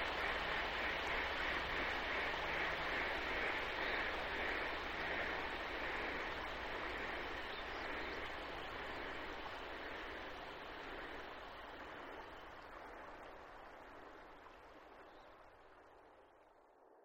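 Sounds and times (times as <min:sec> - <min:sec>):
birds washing over the water: 0:00.0 - 0:12.6.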